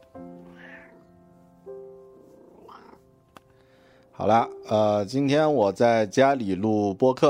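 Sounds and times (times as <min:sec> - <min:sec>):
cat meowing: 0:00.2 - 0:01.2, 0:02.3 - 0:03.1
speech: 0:04.2 - 0:07.2.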